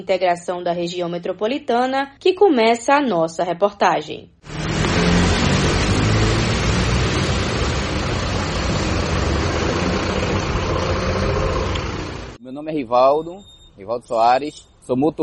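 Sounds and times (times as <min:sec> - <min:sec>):
speech: 0:00.0 - 0:04.4, 0:12.6 - 0:15.2
buses idling at the integrated bus terminal of Camaragibe, Brazil: 0:04.5 - 0:12.4.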